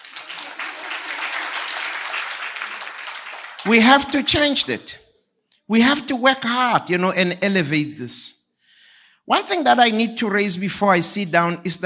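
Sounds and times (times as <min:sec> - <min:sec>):
audience clapping: 0:00.0 - 0:04.7
speech: 0:03.6 - 0:05.0, 0:05.7 - 0:08.4, 0:09.3 - 0:11.8.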